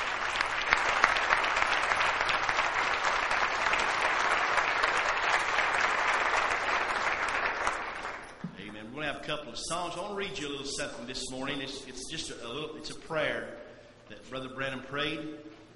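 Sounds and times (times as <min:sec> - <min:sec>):
audience applauding, hand clapping: 0:00.0 - 0:08.8
speech: 0:09.3 - 0:13.6, 0:14.2 - 0:15.4.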